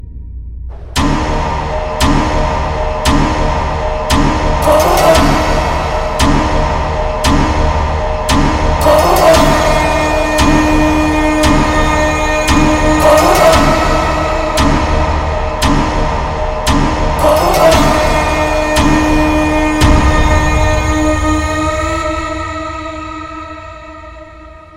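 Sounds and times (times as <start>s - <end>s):
background music: 0.7s - 24.7s.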